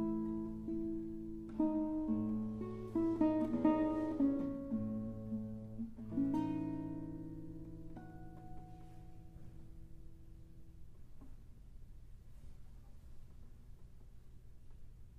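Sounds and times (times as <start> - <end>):
solo guitar: 0.0 - 11.7.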